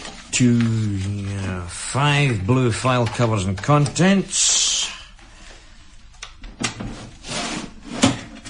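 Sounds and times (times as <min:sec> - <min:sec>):
speech: 0:00.4 - 0:05.0
filing cabinet drawer sliding open: 0:06.6 - 0:08.4.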